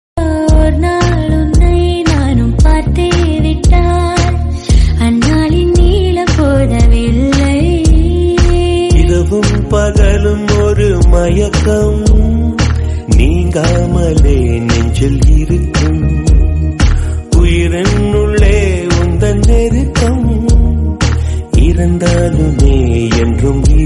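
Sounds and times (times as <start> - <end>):
Tamil song: 0.2 - 23.8.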